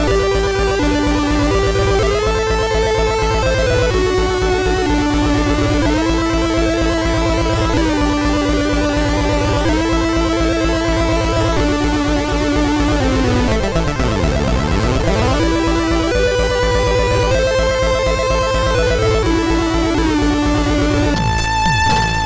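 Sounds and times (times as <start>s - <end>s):
MOS6581R3 SID chip synth with delay: 0.0s - 22.2s.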